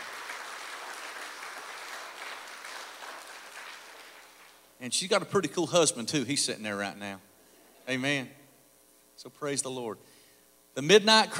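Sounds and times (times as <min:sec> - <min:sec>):
audience applause: 0:00.0 - 0:04.7
speech: 0:04.8 - 0:07.3, 0:07.9 - 0:08.4, 0:09.2 - 0:10.1, 0:10.8 - 0:11.3.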